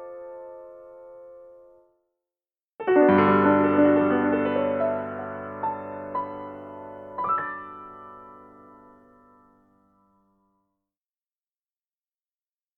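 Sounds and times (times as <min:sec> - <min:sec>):
piano: 0:00.0 - 0:02.0, 0:02.8 - 0:10.7.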